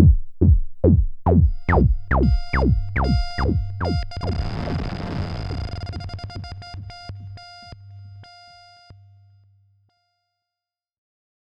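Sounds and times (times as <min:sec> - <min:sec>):
Hydrasynth synthesizer with external modulation: 0:00.8 - 0:08.6.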